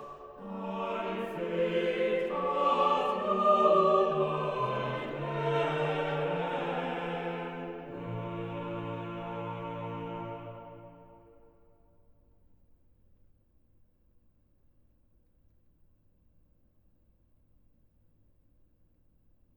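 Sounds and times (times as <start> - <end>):
organ chorale: 0.0 - 11.4.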